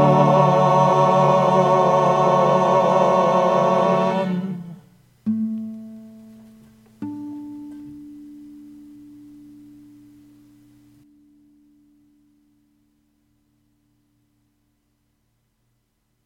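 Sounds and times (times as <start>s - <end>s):
upper vocals: 0.0s - 5.0s.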